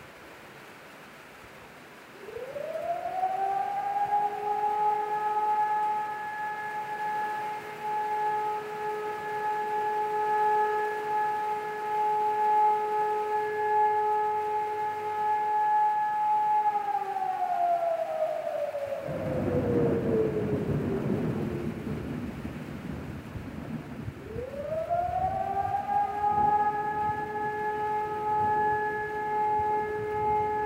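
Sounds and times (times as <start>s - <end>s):
siren: 2.1s - 30.6s
heavy thunderstorm: 17.4s - 28.8s.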